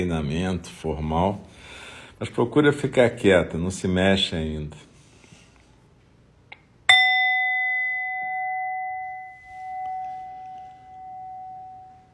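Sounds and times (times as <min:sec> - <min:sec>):
speech: 0:00.0 - 0:01.6, 0:02.2 - 0:04.9
meditation bell struck once: 0:06.9 - 0:12.1.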